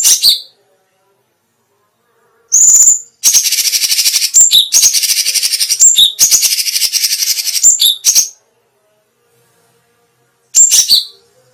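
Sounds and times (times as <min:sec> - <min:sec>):
Grey-cheeked Bulbul singing: 0:00.0 - 0:00.6, 0:02.5 - 0:08.4, 0:10.6 - 0:11.3.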